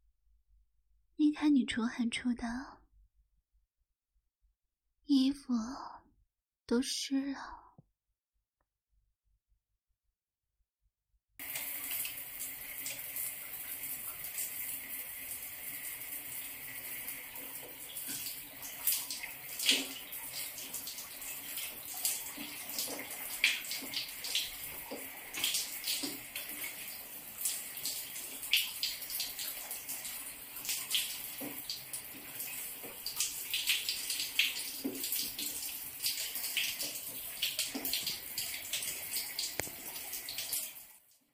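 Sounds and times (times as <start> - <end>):
speech: 1.3 - 2.8, 5.1 - 6.0, 6.7 - 7.6
tap water running to fill a bath: 11.4 - 41.2.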